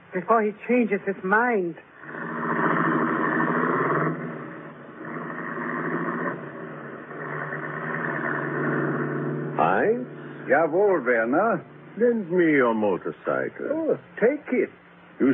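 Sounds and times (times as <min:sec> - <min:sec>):
speech: 0:00.1 - 0:01.9, 0:09.8 - 0:15.3
car engine as car turns around: 0:02.0 - 0:13.9.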